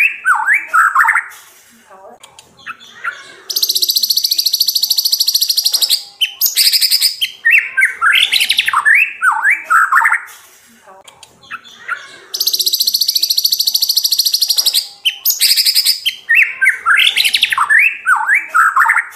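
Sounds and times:
White-rumped shama singing whistled phrases: 0.0 - 1.3, 3.5 - 10.3, 12.4 - 19.1.

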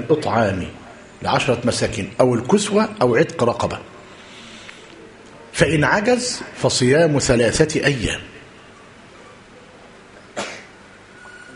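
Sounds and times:
speech: 0.0 - 4.0, 5.6 - 8.4
person sneezing in an audience: 10.4 - 10.8.

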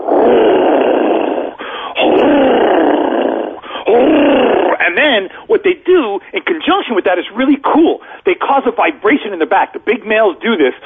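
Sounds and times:
person imitating an alligator bellow: 0.0 - 5.2
speech: 4.9 - 10.8.

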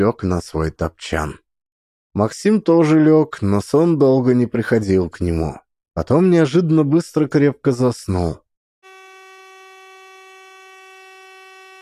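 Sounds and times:
speech: 0.0 - 1.4, 2.1 - 8.4
factory garage horn blast: 8.8 - 11.8.

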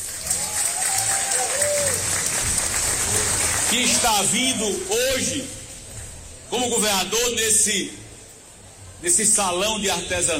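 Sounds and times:
audience applause in a crafts fair hall: 0.0 - 4.9
speech: 3.7 - 5.6, 6.5 - 8.0, 9.0 - 10.3.

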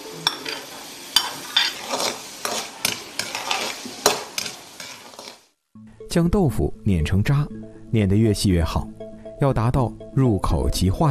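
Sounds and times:
diced cucumber skin and mushroom sizzling in hot oil: 0.0 - 5.6
utensil knocking and scraping a pan: 0.3 - 5.5
speech: 6.1 - 11.0.

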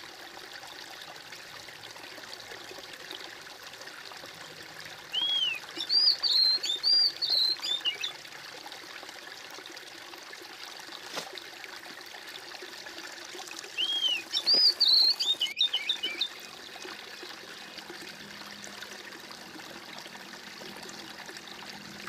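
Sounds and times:
bird song of clear arched whistles: 5.1 - 8.1, 13.8 - 16.3.

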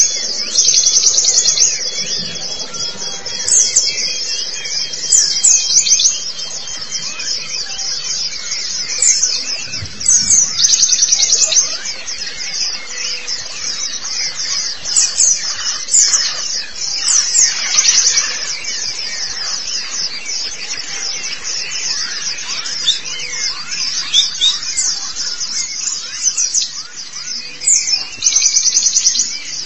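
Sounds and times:
White-eye high chirping song: 0.0 - 29.6.

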